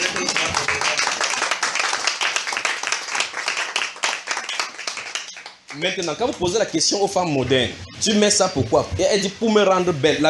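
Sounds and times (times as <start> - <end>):
audience applauding: 0.0 - 6.5
speech: 5.8 - 10.2.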